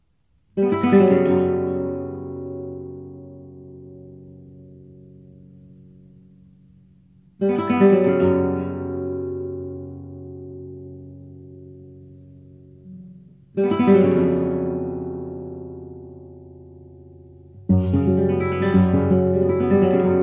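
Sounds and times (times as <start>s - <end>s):
guitar playing taranta: 0.6s - 6.0s, 7.4s - 20.2s.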